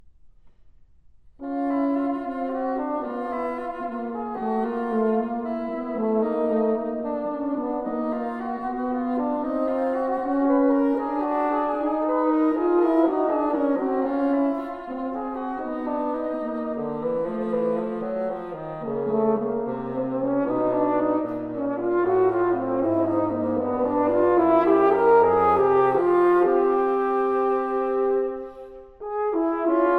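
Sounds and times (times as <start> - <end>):
horn and bassoon duet: 1.4 - 29.9.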